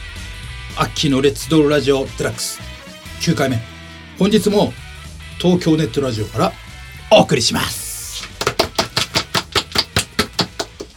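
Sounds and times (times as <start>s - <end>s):
speech: 0.8s - 4.8s, 5.4s - 7.8s
applause: 8.2s - 10.9s.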